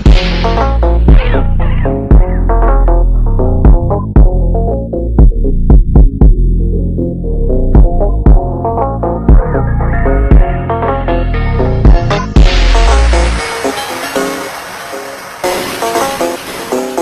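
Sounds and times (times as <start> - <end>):
slowed bass: 0.0 - 13.5.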